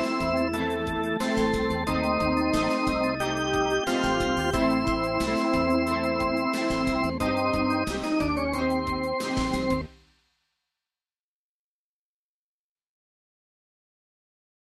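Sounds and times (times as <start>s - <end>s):
MIDI dungeon music: 0.0s - 10.0s.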